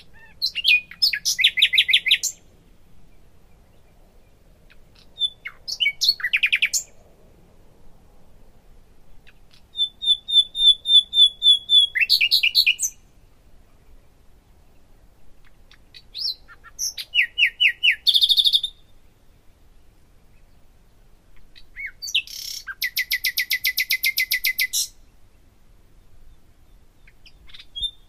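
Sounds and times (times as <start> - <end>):
common nightingale singing: 0.0 - 2.4, 5.1 - 6.9, 9.5 - 13.0, 16.2 - 18.8, 21.8 - 25.0, 27.0 - 28.0.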